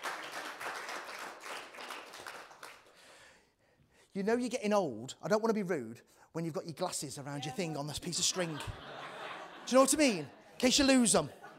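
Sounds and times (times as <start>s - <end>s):
crowd applause: 0.0s - 2.9s
speech: 4.2s - 9.1s, 9.7s - 11.4s
laughter: 8.0s - 11.5s.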